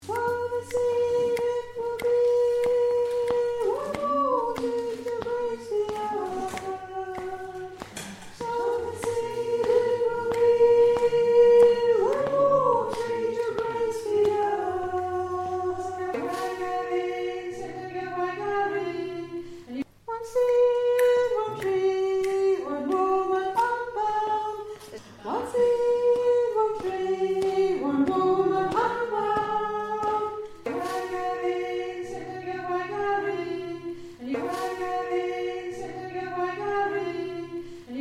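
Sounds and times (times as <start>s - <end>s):
soprano singing: 0.0s - 37.9s.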